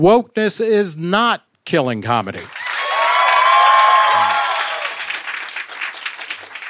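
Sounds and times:
speech: 0.0 - 2.6
cheering and whoops: 2.5 - 5.2
crowd applause: 2.5 - 6.6.

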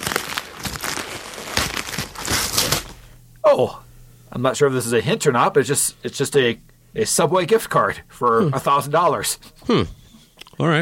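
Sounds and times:
gift wrapping paper being torn open: 0.0 - 3.1
speech: 3.4 - 10.0, 10.6 - 10.8.

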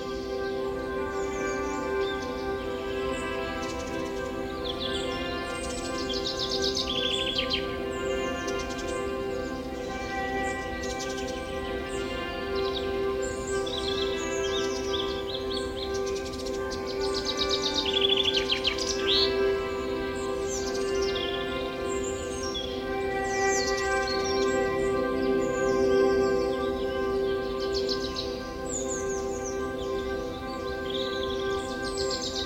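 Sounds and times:
bird chorus chirping and whistling: 0.0 - 32.4
steady humming drone: 0.0 - 32.4.

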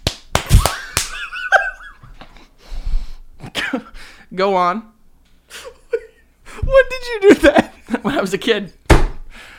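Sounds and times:
fist claps: 0.0 - 1.3
speech: 4.4 - 4.9, 6.7 - 8.8
breathy gasps: 9.3 - 9.5.

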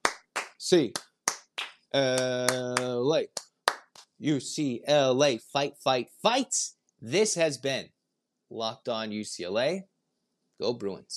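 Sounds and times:
rhythmic handclaps: 0.0 - 4.2
speech: 0.6 - 1.1, 1.9 - 3.4, 4.2 - 9.9, 10.6 - 11.1.

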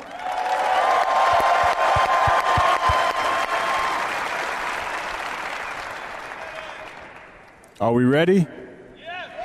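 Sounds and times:
audience applause: 0.0 - 7.5
speech: 7.8 - 8.6.

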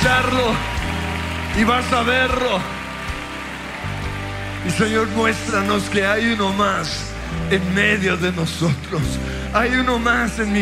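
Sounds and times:
crowd applause: 0.0 - 8.0
speech: 1.6 - 2.8, 4.6 - 10.5.

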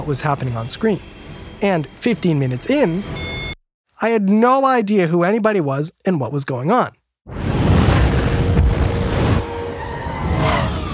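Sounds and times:
speech: 0.0 - 3.3, 4.0 - 7.4
cinematic movie explosions: 7.3 - 10.9.

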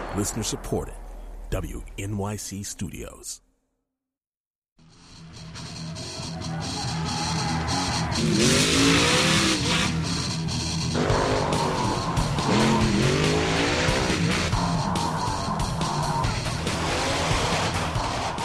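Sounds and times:
speech: 0.1 - 3.5
monster truck engines revving: 4.9 - 18.4
monster truck tires skidding: 5.8 - 18.4.

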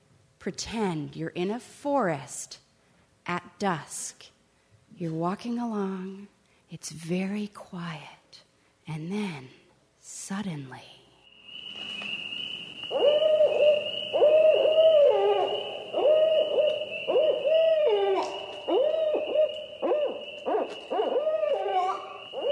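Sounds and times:
speech: 0.4 - 2.6, 3.2 - 4.3, 4.9 - 11.0
female barred owl hooting to other owls: 11.3 - 22.4
steady high-pitched insect drone: 11.3 - 22.4.

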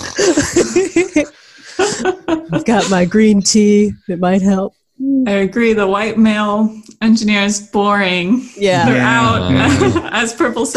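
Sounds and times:
voice imitating snoring: 0.0 - 0.3, 8.6 - 10.1
laughter: 0.0 - 3.2, 8.7 - 10.7
speech: 2.0 - 10.7.

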